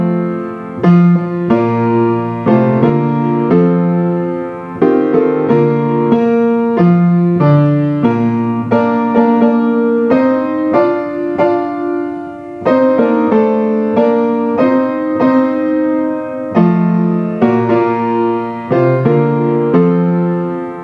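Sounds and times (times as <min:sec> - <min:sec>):
SSB piano: 0:00.0 - 0:20.8.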